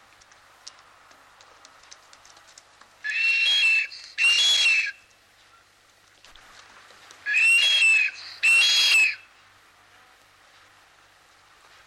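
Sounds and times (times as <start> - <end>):
blue duck giving breathy high whistled calls: 3.1 - 5.0, 7.3 - 9.2.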